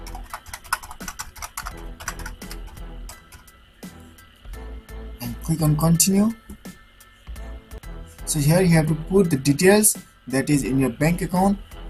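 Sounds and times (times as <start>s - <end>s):
typing a bank account number on a computer keyboard into a PayPal withdrawal form: 0.0s - 3.4s
speech: 5.5s - 6.4s, 8.3s - 11.8s.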